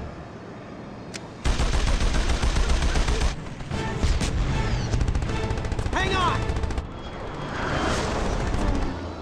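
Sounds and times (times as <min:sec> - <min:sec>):
rapid gunfire from a ship's gun in a fight with eco pirates: 0:01.4 - 0:07.4, 0:08.1 - 0:09.0.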